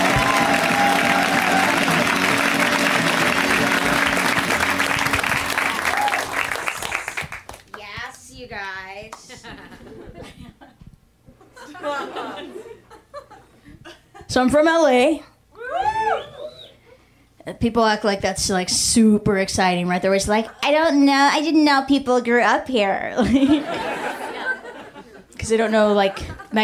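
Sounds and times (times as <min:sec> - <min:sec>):
audience clapping and cheering for a comedian: 0:00.0 - 0:08.0
laughter: 0:09.3 - 0:10.8, 0:11.4 - 0:14.3, 0:23.2 - 0:25.4
speech: 0:14.4 - 0:15.3, 0:17.6 - 0:23.9, 0:25.5 - 0:26.6.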